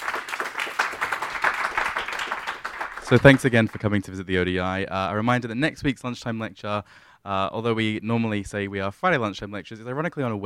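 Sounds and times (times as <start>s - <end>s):
audience round of applause: 0.0s - 3.9s
speech: 3.1s - 10.4s.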